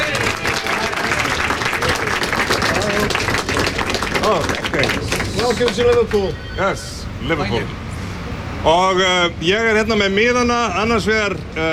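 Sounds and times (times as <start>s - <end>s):
audience applause for a host: 0.0s - 6.3s
audience cheering voices: 0.0s - 6.3s
speech: 4.3s - 7.8s, 8.6s - 11.7s.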